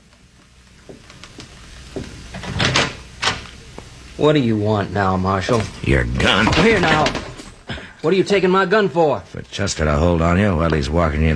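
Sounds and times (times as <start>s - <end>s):
door being opened: 2.3s - 3.6s, 5.4s - 7.7s
speech: 4.2s - 7.2s, 8.0s - 11.3s
door latch and hardware rattling: 5.5s - 7.6s.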